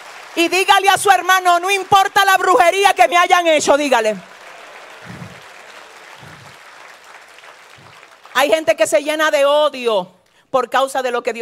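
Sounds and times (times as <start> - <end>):
audience applause: 0.0 - 2.5, 3.4 - 8.6
speech: 0.4 - 4.3, 8.4 - 11.4.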